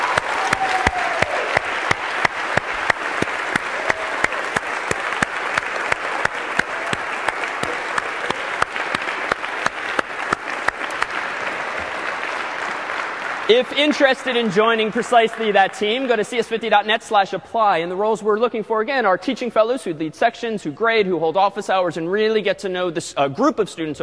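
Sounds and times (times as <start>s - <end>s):
crowd clapping: 0.0s - 17.0s
speech: 13.5s - 24.0s.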